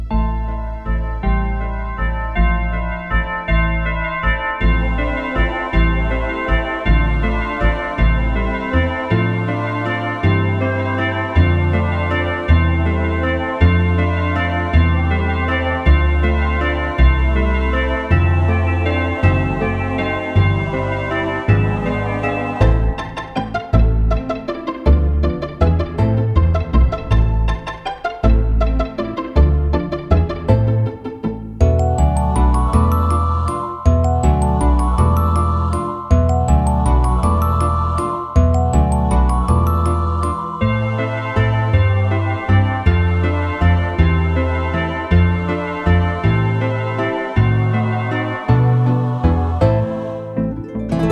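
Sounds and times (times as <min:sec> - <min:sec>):
christmas bells: 0:00.1 - 0:51.1.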